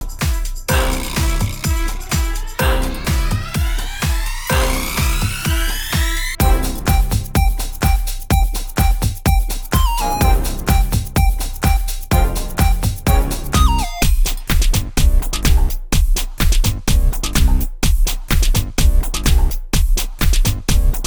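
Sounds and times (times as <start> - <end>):
126 bpm tech house intro: 0.0 - 21.0.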